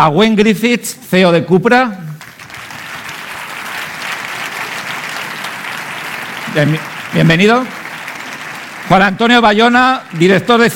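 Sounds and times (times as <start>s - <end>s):
speech: 0.0s - 2.1s, 6.6s - 7.8s, 8.9s - 10.7s
audience applause: 2.2s - 10.7s.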